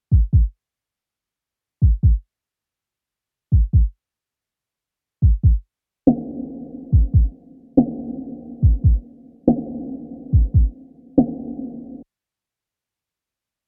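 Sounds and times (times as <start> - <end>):
drums loop: 0.1 - 0.5, 1.8 - 2.2, 3.6 - 3.9, 5.2 - 12.0.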